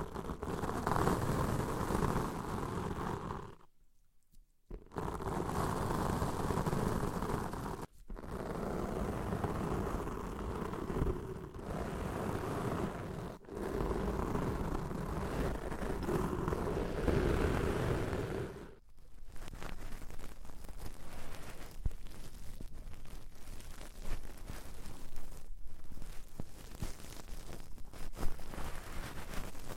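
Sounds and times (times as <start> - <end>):
muffled rubbing and scraping of deep ear cleaning: 0.0 - 3.7, 4.6 - 29.7
sparse crackles and soft taps: 18.8 - 29.7.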